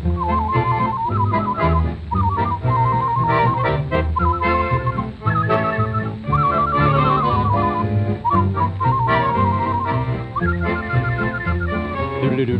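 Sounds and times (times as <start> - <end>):
person whistling a tune: 0.1 - 12.4.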